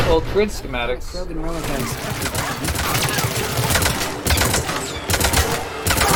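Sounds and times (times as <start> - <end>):
speech: 0.1 - 3.1
turret shooting at the player in a video game: 1.6 - 6.1.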